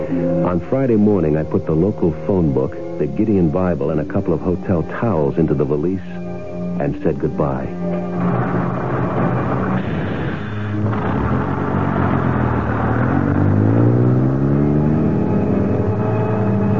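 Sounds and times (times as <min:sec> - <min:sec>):
bus engine driving: 0:00.0 - 0:16.7
speech: 0:00.5 - 0:06.2, 0:06.8 - 0:08.4.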